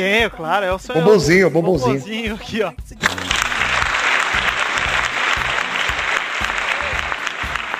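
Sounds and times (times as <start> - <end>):
speech: 0.0 - 3.2
crowd applauding: 3.0 - 7.7.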